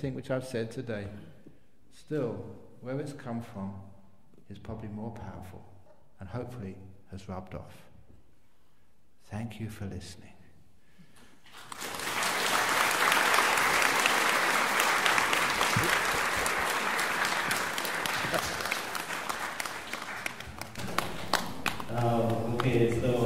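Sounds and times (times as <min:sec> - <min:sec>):
speech: 0:00.0 - 0:01.3, 0:02.0 - 0:03.9, 0:04.5 - 0:07.9, 0:09.3 - 0:10.4, 0:18.3 - 0:18.6, 0:22.0 - 0:23.2
audience applause: 0:11.5 - 0:23.2.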